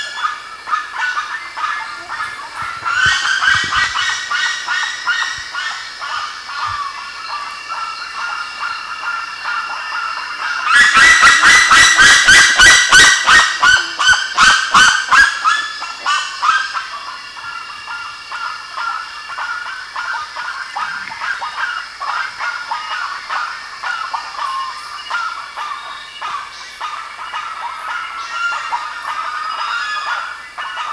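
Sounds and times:
birds squawking: 0:00.0 - 0:30.9.

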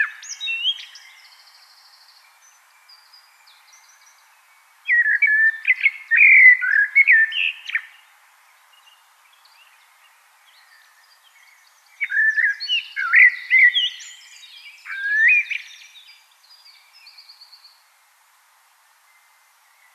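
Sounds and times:
common blackbird singing: 0:00.0 - 0:08.0, 0:10.5 - 0:17.8.

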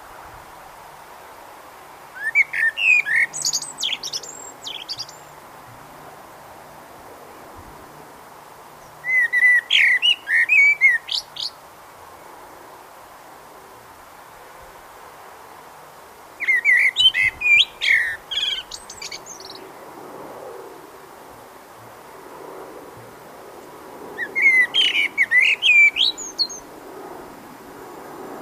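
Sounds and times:
hiss: 0:00.0 - 0:28.3
common blackbird song: 0:02.2 - 0:05.4, 0:08.8 - 0:11.6, 0:16.4 - 0:19.7, 0:24.2 - 0:26.7.

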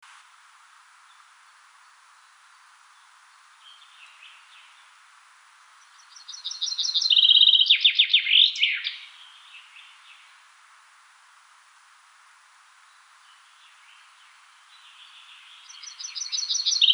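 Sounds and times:
common chaffinch Fringilla coelebs song in repeated phrases: 0:05.8 - 0:10.3, 0:13.3 - 0:16.9.

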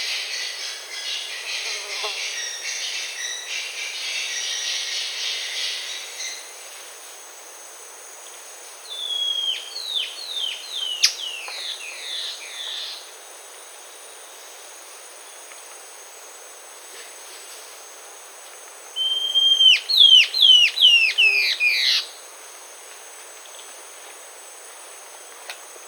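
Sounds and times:
constant hiss: 0:00.0 - 0:25.8
bird whistling: 0:19.0 - 0:22.0.

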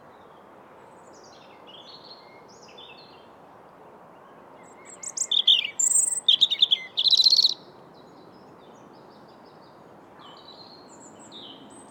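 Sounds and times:
European robin song: 0:04.7 - 0:07.6.

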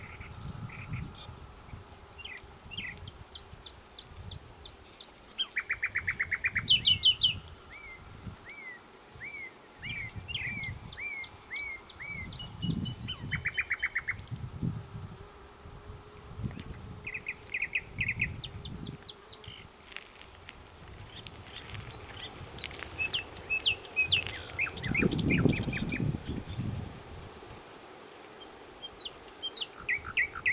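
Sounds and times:
common nightingale singing: 0:02.2 - 0:14.5, 0:17.1 - 0:19.7, 0:21.6 - 0:26.7, 0:28.8 - 0:30.5.

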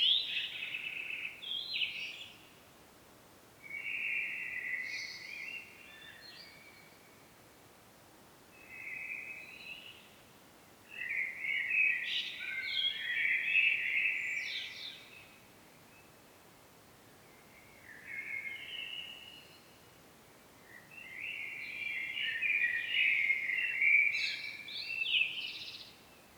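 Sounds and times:
common blackbird song: 0:00.0 - 0:02.5, 0:03.6 - 0:07.2, 0:10.9 - 0:16.2, 0:17.2 - 0:19.8, 0:20.6 - 0:26.3
hiss: 0:00.0 - 0:26.3.

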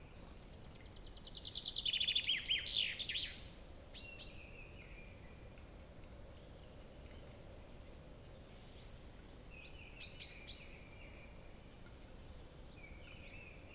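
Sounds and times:
common chaffinch singing: 0:00.0 - 0:05.5, 0:08.4 - 0:13.7.

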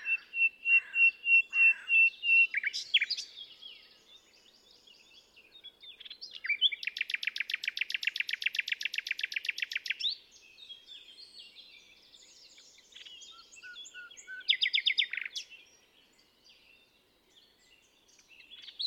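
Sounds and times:
common nightingale song: 0:00.0 - 0:18.8.

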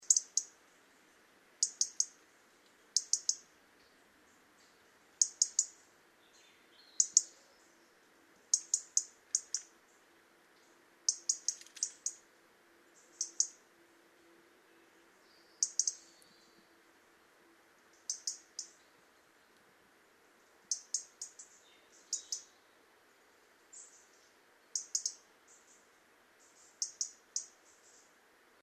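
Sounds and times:
European robin ticking calls: 0:00.0 - 0:00.8, 0:01.6 - 0:12.3, 0:12.9 - 0:13.7, 0:15.1 - 0:16.7, 0:17.8 - 0:19.7, 0:20.6 - 0:22.7, 0:23.6 - 0:28.2
soft steady hiss: 0:00.0 - 0:28.6.

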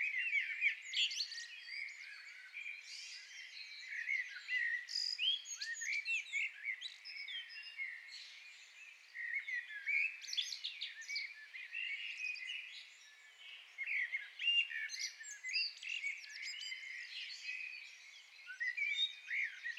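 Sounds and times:
common blackbird singing: 0:00.0 - 0:19.7.

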